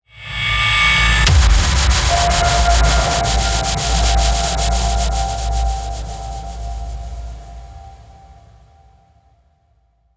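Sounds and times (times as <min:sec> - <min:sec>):
rising tension build: 0:00.6 - 0:08.5
impact hit: 0:01.2 - 0:08.7.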